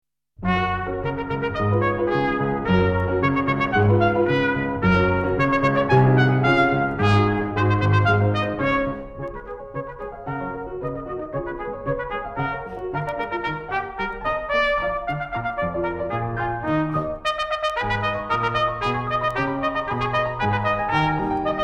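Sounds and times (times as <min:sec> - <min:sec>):
trumpet: 0:00.4 - 0:21.6.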